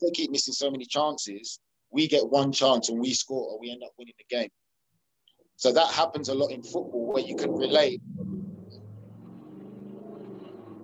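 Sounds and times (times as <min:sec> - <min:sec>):
speech: 0:00.0 - 0:04.6, 0:05.6 - 0:08.3
Ford Mustang engine rumble driving past outside: 0:07.1 - 0:10.8.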